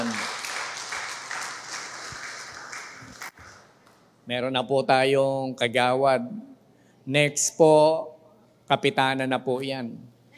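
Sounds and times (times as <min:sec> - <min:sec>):
church congregation applauding an election winner: 0:00.0 - 0:03.8
speech: 0:04.3 - 0:06.5, 0:07.1 - 0:08.1, 0:08.7 - 0:10.1.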